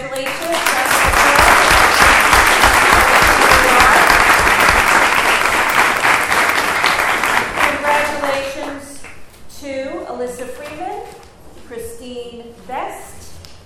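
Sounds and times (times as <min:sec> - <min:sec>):
round of applause for newly appointed teachers: 0:00.2 - 0:08.7.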